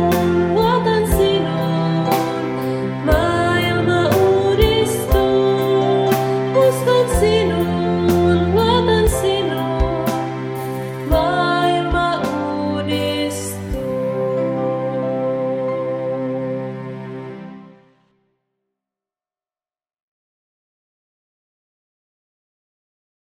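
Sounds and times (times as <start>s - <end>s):
song: 0.0s - 18.1s.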